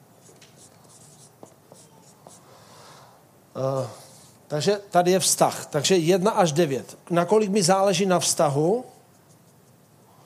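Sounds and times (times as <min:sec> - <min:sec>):
pen strokes crossing out and rewriting a word by hand: 0:00.2 - 0:02.4, 0:09.1 - 0:09.9
speech: 0:03.6 - 0:08.9.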